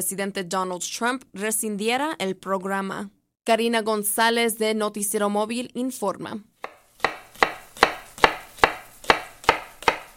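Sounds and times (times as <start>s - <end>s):
speech: 0.0s - 6.5s
knife chopping vegetables into small squares: 6.6s - 10.1s.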